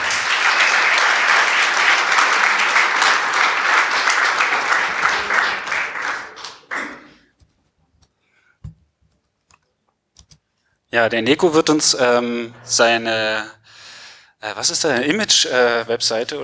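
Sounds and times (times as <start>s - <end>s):
audience applause: 0.0s - 7.2s
speech: 11.0s - 13.6s, 14.4s - 16.4s.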